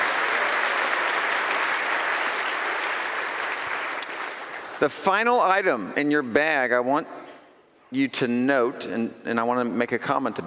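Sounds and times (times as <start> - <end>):
audience clapping: 0.0 - 5.1
speech: 4.8 - 7.2, 7.9 - 10.4.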